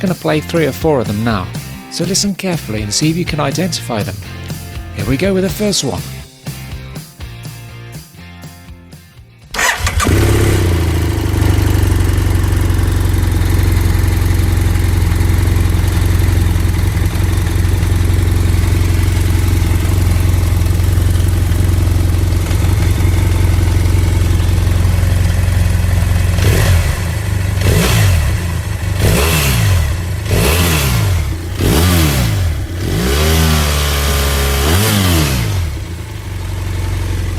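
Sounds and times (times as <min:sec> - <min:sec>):
speech: 0:00.0 - 0:06.2
parallel twin motorcycle engine idling and revving: 0:00.0 - 0:37.3.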